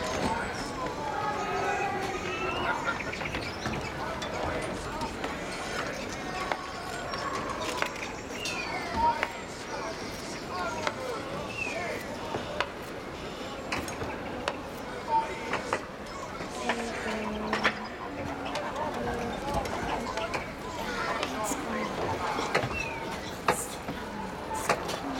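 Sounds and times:
market ambience: 0.0s - 25.1s.

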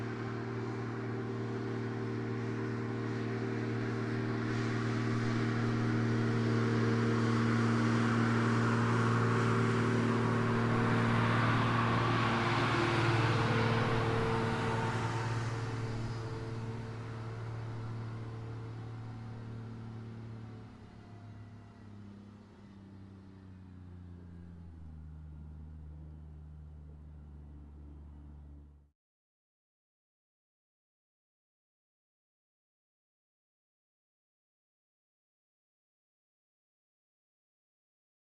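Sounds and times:
Case Puma 180 engine at steady high RPM heard from exterior, distant: 0.0s - 28.7s.

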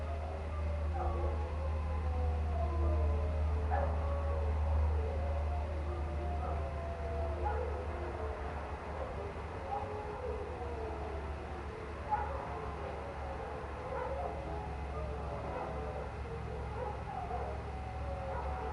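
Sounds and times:
pack of canines howling into the night in cold winter air: 0.0s - 18.7s.

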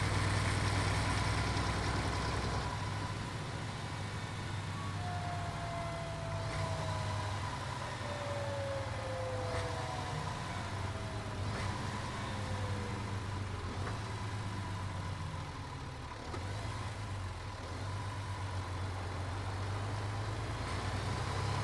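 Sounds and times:
MAN Lion's Coach engine heard on board: 0.0s - 21.6s.

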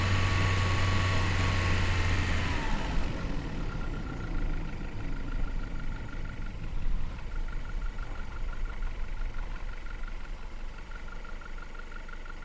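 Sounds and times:
VW Polo engine stopping: 0.0s - 12.4s.

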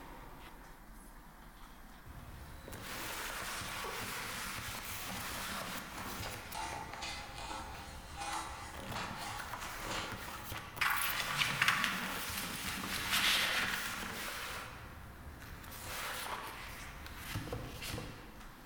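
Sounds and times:
medieval office ambience: 2.1s - 18.2s.

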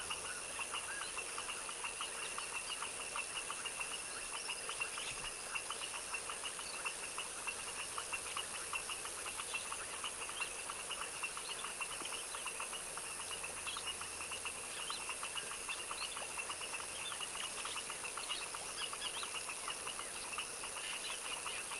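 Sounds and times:
foaming frog chorus in a tropical wetland swamp at dusk: 0.0s - 21.7s.

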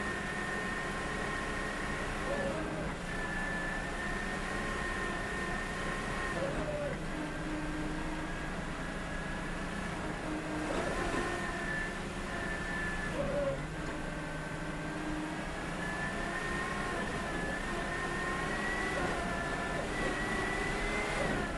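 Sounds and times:
vehicle driving slowly, stopping and reversing, recorded onboard: 0.0s - 21.5s.

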